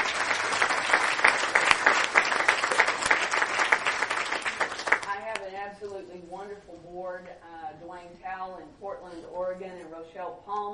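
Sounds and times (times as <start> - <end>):
audience applause: 0.0 - 5.3
speech: 8.6 - 10.7.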